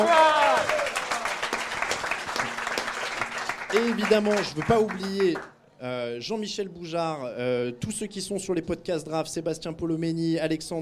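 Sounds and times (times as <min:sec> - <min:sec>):
audience applause: 0:00.0 - 0:05.5
speech: 0:03.7 - 0:10.8.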